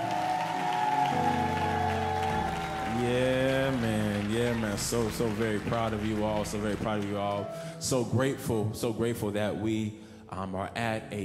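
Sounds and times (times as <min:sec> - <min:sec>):
audience applauding: 0:00.0 - 0:07.7
speech: 0:04.8 - 0:11.2.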